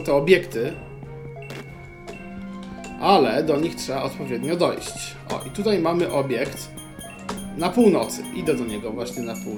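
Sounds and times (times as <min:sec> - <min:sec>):
speech: 0:00.0 - 0:00.9, 0:03.0 - 0:06.8, 0:07.6 - 0:09.5
game interaction chime: 0:04.4 - 0:09.5.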